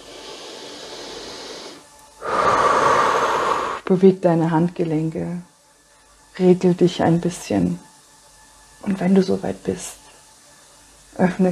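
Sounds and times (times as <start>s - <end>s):
slow shared breathing in and out: 0.0s - 3.8s
speech: 3.9s - 5.5s, 6.4s - 7.9s, 8.8s - 10.0s, 11.2s - 11.5s.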